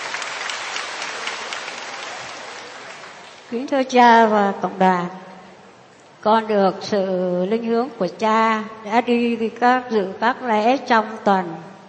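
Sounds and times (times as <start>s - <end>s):
audience applauding: 0.0s - 3.5s
speech: 3.5s - 5.2s, 6.2s - 11.7s.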